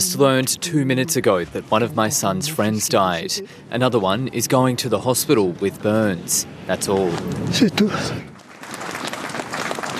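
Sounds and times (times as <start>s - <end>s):
speech: 0.1s - 8.4s
crowd applauding: 8.0s - 9.9s.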